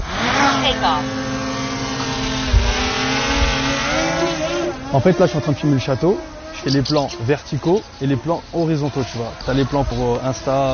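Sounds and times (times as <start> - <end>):
small camera drone taking off: 0.0 - 10.7
speech: 0.7 - 1.2, 4.9 - 10.7.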